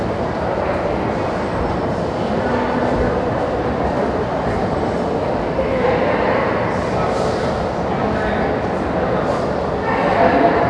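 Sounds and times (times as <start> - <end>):
crowd in a lobby: 0.0 - 10.6.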